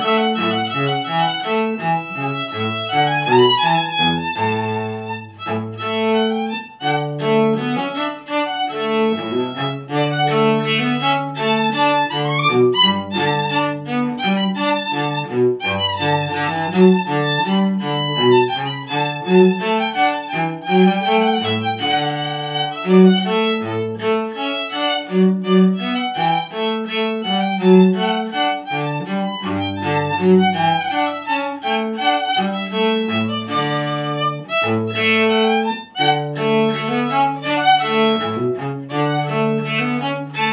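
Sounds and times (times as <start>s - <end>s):
cello: 0.0s - 40.5s
violin: 0.0s - 40.5s.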